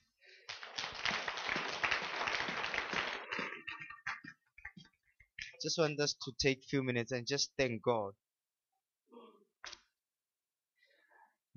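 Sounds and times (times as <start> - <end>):
crowd clapping: 0.0 - 5.5
speech: 5.6 - 8.2.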